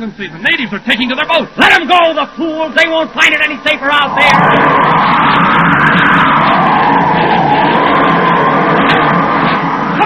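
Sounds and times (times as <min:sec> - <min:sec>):
speech: 0:00.0 - 0:06.0
storm wind blowing: 0:03.1 - 0:10.0.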